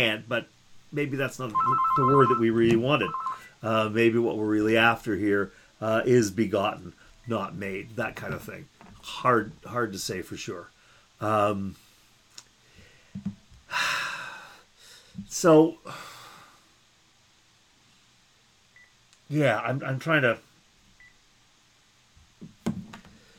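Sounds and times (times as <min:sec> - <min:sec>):
speech: 0:00.0 - 0:11.8, 0:13.2 - 0:14.0, 0:15.2 - 0:16.1, 0:19.3 - 0:20.5
faint beeps and clicks: 0:01.4 - 0:03.6
telephone ringing: 0:01.5 - 0:03.5.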